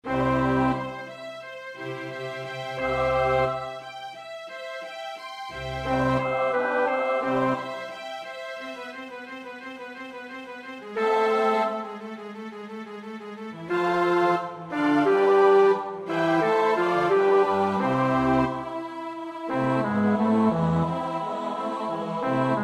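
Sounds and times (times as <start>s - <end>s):
bass: 0.0s - 1.0s, 1.9s - 3.8s, 5.6s - 7.8s, 13.6s - 18.8s, 19.5s - 22.6s.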